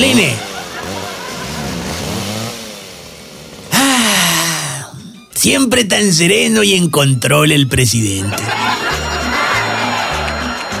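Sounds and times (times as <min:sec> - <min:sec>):
laughter: 0:00.0 - 0:01.9, 0:08.2 - 0:10.7
chainsaw revving: 0:00.0 - 0:04.6
speech: 0:05.4 - 0:09.0.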